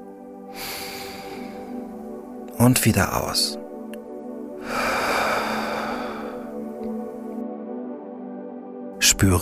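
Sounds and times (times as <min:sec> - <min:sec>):
deep breath in through the nose during a guided relaxation exercise: 0:00.5 - 0:01.9, 0:04.6 - 0:06.6
speech: 0:02.6 - 0:03.6, 0:09.2 - 0:09.4.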